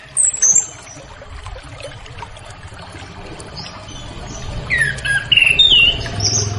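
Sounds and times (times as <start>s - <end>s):
orange-headed thrush singing: 2.4s - 6.5s.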